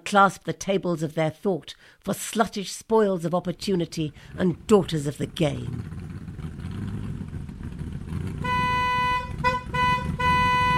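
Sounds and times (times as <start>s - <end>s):
speech: 0.1s - 6.1s
low rumbling murmur: 5.6s - 10.7s
trumpet call: 8.4s - 10.7s.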